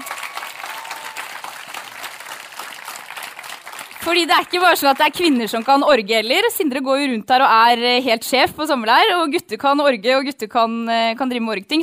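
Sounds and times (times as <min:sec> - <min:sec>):
applause: 0:00.0 - 0:06.1
speech: 0:04.0 - 0:11.8.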